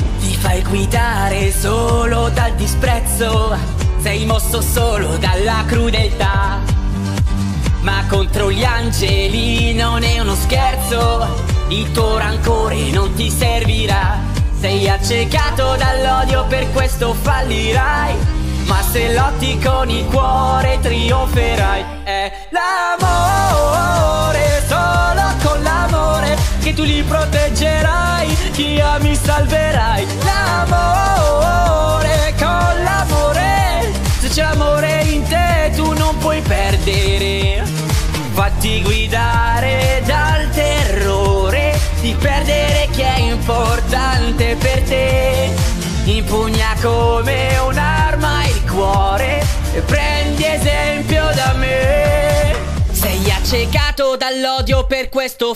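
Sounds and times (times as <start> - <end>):
man singing an Italian cover song: 0.1 - 6.8, 7.8 - 55.5.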